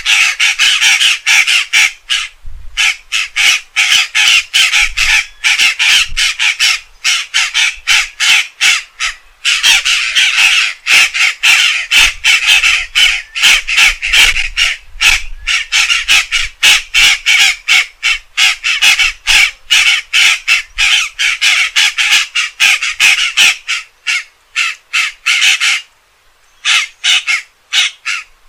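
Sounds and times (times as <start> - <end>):
Pantanal jay calling: 0.0 - 25.9, 26.6 - 28.3.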